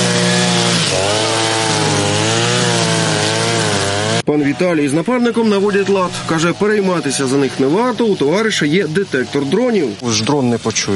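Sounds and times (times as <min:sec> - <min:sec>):
chainsaws buzzing: 0:00.0 - 0:10.9
speech: 0:04.3 - 0:10.9.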